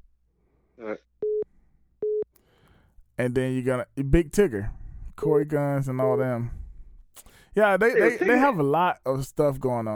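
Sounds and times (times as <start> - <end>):
speech: 0.8 - 1.1, 3.2 - 6.6, 7.2 - 9.9
telephone beeps from an incoming call: 1.2 - 1.4, 2.0 - 2.2.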